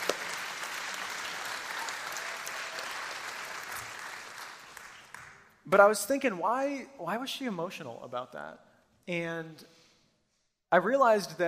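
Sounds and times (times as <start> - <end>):
audience clapping: 0.0 - 5.6
speech: 5.7 - 9.8, 10.7 - 11.4.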